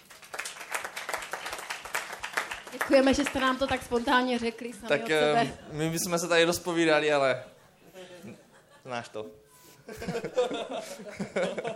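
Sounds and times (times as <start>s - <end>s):
audience clapping to congratulate a couple: 0.0s - 4.5s
speech: 2.7s - 7.5s, 8.9s - 11.7s
laughter: 4.9s - 6.2s, 7.6s - 11.7s.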